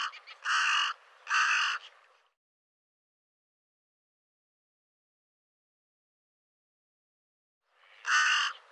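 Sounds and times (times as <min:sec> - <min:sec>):
bird giving harsh raspy caws: 0:00.0 - 0:02.0, 0:07.8 - 0:08.7.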